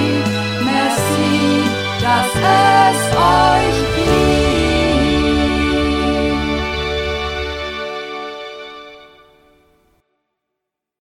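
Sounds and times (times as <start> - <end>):
multi-part voices: 0.0 - 7.3.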